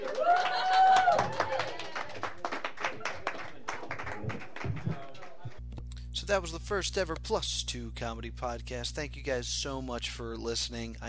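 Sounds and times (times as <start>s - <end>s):
audience applause: 0.0s - 5.6s
speech: 6.3s - 11.0s.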